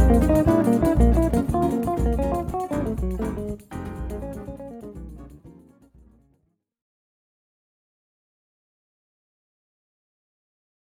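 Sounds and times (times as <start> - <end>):
batucada samba percussion with jazz: 0.0 - 5.4.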